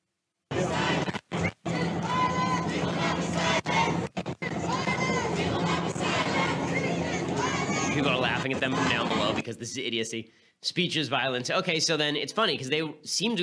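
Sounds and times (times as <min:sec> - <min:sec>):
large crowd of protesters chanting: 0:00.5 - 0:09.4
speech: 0:08.5 - 0:13.4.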